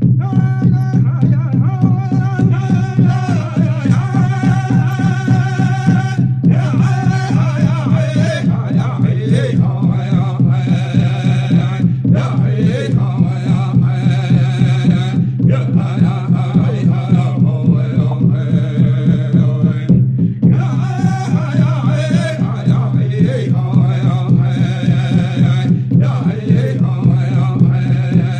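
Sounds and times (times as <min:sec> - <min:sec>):
Kiowa fast war dance music: 0:00.1 - 0:28.3.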